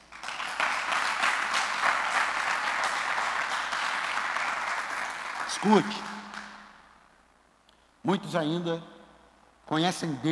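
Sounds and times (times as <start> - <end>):
audience applause: 0.0 - 6.6
speech: 5.6 - 6.1, 8.0 - 8.9, 9.7 - 10.3.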